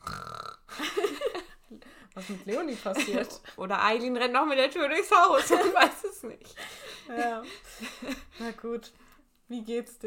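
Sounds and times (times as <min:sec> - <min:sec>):
voice imitating snoring: 0:00.0 - 0:00.7
speech: 0:02.2 - 0:10.0.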